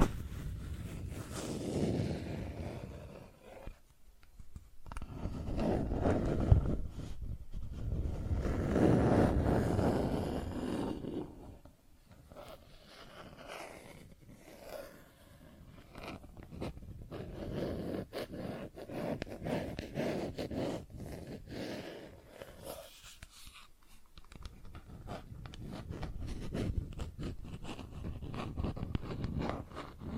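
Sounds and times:
plastic objects scratched and rubbed: 0.0 - 30.1.

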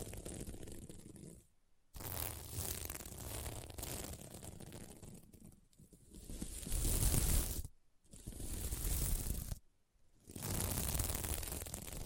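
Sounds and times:
fingers scratching a sequin mermaid pillow: 0.0 - 9.6, 10.2 - 12.0.

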